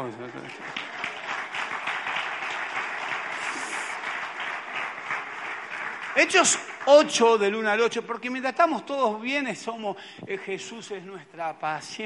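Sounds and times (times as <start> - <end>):
speech: 0.0 - 1.0, 6.2 - 12.0
audience applause: 0.0 - 7.8.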